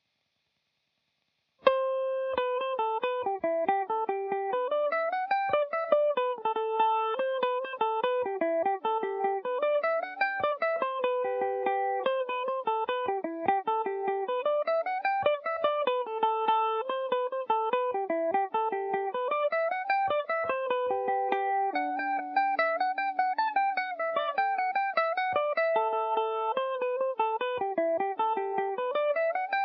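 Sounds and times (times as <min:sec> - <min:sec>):
Irish mandolin in G major: 0:01.6 - 0:29.6.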